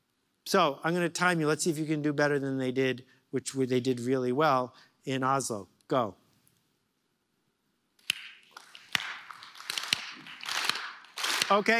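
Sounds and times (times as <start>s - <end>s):
speech: 0.5s - 6.2s, 11.5s - 11.7s
audience clapping together in rhythm: 8.0s - 11.7s.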